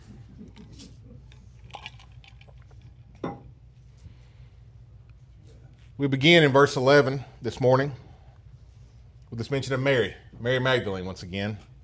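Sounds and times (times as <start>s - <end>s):
low steady hum: 0.0s - 11.8s
glass clinking: 3.2s - 3.5s
glass set down: 3.2s - 3.5s
speech: 6.0s - 8.1s, 9.3s - 11.7s.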